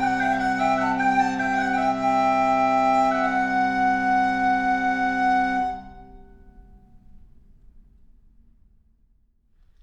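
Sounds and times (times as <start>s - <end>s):
chalumeau improvisation: 0.0s - 6.6s.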